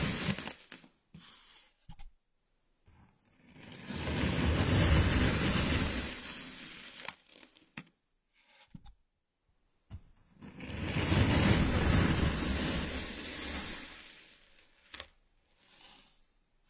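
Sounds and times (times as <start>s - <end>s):
kinetic sand rustling and hissing: 0.0s - 0.6s, 3.9s - 7.0s, 10.6s - 14.4s.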